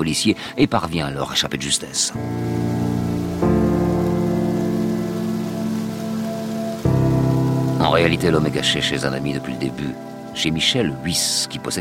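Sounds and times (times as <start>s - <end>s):
speech: 0.0s - 3.2s, 8.0s - 11.7s
heavy pouring rain at night: 2.2s - 11.7s.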